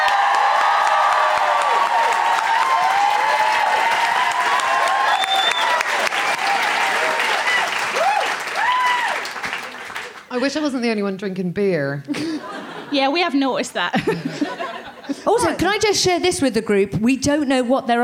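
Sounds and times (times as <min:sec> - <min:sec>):
audience clapping at a live show: 0:00.0 - 0:10.5
speech: 0:10.4 - 0:18.0
laughter: 0:12.1 - 0:15.3.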